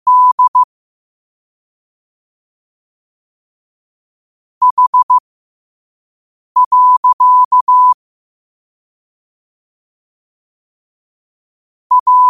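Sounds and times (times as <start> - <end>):
morse code at 5 wpm: 0.0 - 0.7, 4.6 - 5.2, 6.6 - 8.0, 11.9 - 12.2.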